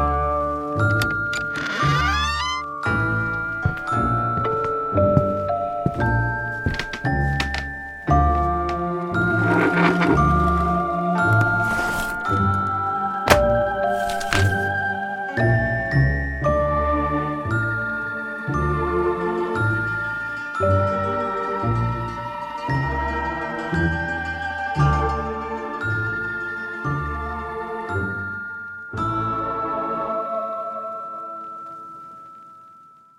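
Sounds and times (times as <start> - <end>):
music: 0.0 - 33.1.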